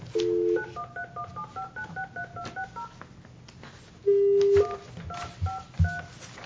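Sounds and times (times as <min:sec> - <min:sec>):
telephone keypad dialing tones: 0:00.2 - 0:02.9, 0:04.1 - 0:06.1.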